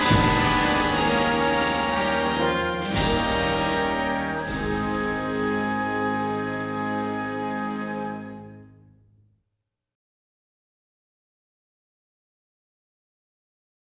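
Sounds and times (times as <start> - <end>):
orchestra playing a patriotic song: 0.0 - 8.9.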